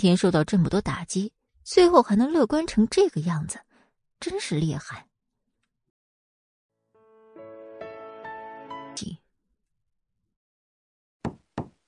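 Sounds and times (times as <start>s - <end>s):
speech: 0.0s - 5.1s, 9.0s - 9.2s
knocking on a door: 11.2s - 11.8s.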